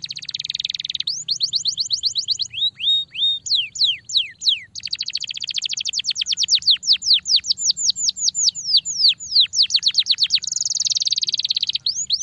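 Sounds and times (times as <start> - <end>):
Belgian canary singing rolling tours and buzzy trills: 0.0 - 12.2.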